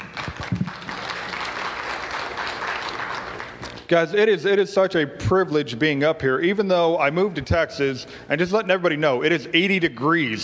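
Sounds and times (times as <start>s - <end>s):
audience applause: 0.0s - 3.8s
speech: 3.9s - 10.4s.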